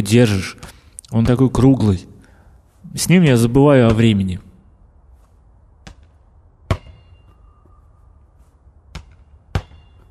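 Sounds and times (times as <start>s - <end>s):
speech: 0.0s - 2.1s, 2.9s - 4.5s
red plastic ball bouncing on the ground: 5.8s - 7.2s, 8.9s - 10.1s.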